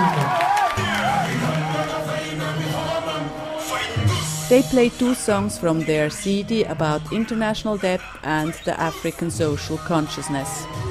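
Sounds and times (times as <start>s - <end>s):
crowd applause: 0.0s - 2.9s
crowd cheering: 0.0s - 4.0s, 10.0s - 10.8s
speech: 4.5s - 10.8s.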